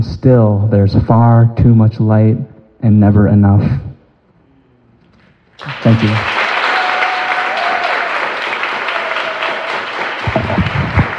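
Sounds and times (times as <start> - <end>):
speech: 0.2 - 3.9, 5.6 - 6.4
audience applause: 5.6 - 11.1.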